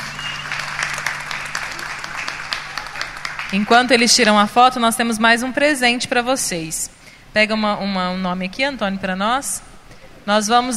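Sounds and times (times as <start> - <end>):
audience applause: 0.0 - 4.4
speech: 3.5 - 9.7, 10.3 - 10.7.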